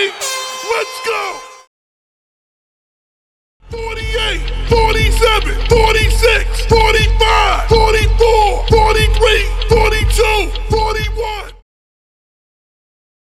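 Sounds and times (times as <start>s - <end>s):
New Year countdown music: 0.2s - 1.7s, 3.7s - 11.2s.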